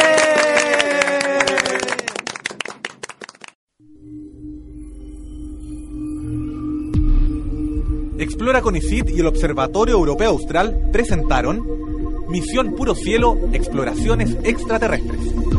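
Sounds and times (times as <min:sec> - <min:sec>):
group applauding a students' presentation: 0:00.0 - 0:03.6
steady music with sustained low tones: 0:03.8 - 0:15.5
speech: 0:08.3 - 0:15.4.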